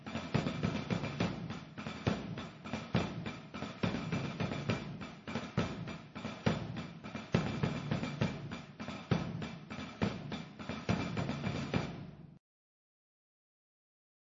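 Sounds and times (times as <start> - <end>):
drums in Andorra: 0.0 - 12.4.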